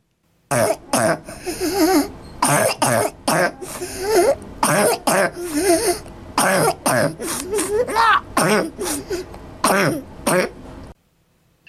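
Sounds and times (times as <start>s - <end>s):
child's barking croup cough: 0.5s - 5.8s, 6.4s - 9.0s, 9.6s - 10.6s
child's strained wheezy breaths: 1.2s - 2.2s, 3.6s - 4.4s, 5.4s - 6.1s, 8.8s - 9.4s.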